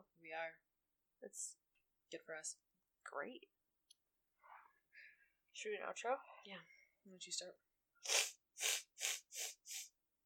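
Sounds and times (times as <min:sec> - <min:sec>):
speech: 0:00.2 - 0:03.6, 0:05.6 - 0:08.7
person sniffling: 0:08.0 - 0:09.9.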